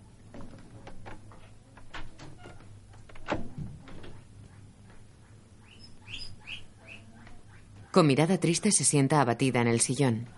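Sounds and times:
door shutting: 0.3 - 4.3
birds chirping: 3.9 - 8.8
speech: 8.0 - 10.3.

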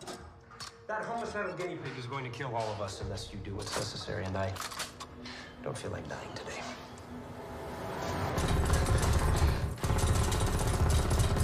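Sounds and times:
speech: 0.9 - 6.6
automatic weapon gunfire: 8.4 - 11.4.

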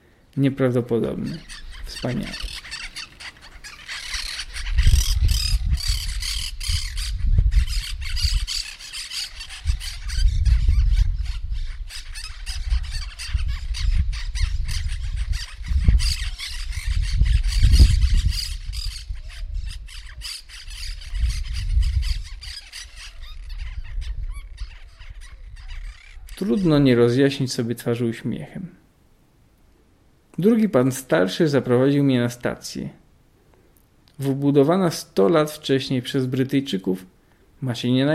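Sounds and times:
speech: 0.4 - 2.6, 26.6 - 28.8, 30.4 - 33.0, 34.2 - 38.1
parakeets screeching: 1.0 - 26.8.

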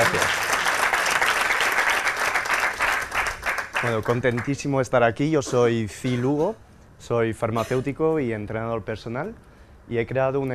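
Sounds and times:
audience applause: 0.0 - 4.6
speech: 3.8 - 10.5.

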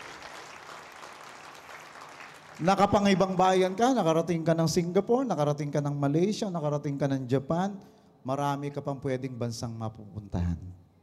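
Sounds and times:
loud audience applause: 0.0 - 3.9
speech: 2.6 - 10.8.

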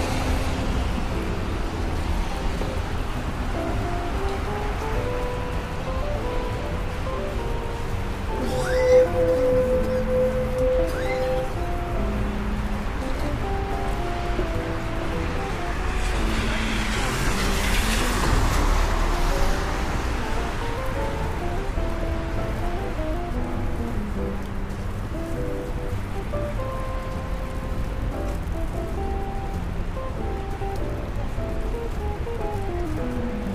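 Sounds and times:
passing traffic: 0.0 - 33.5
rain in New York: 0.0 - 33.5
brief high tone: 8.4 - 11.5.

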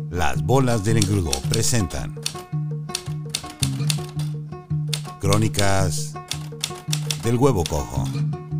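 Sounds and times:
speech: 0.1 - 2.2, 5.2 - 6.2, 7.2 - 8.4
typewriter keys clacking: 0.9 - 2.4, 3.0 - 4.3, 5.0 - 5.7, 6.3 - 7.9.

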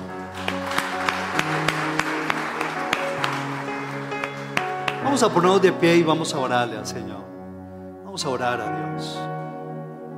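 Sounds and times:
audience applause: 0.0 - 5.6
speech: 5.2 - 7.3, 8.2 - 9.3.

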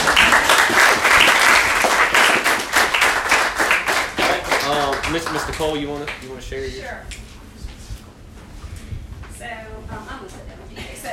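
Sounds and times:
audience applause at a Christian gathering: 0.0 - 6.2
speech: 5.3 - 7.2.

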